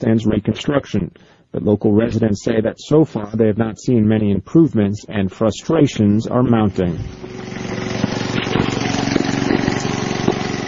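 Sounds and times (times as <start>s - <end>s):
speech: 0.0s - 7.9s
petrol generator running inside a shop in Kabul: 6.5s - 10.6s.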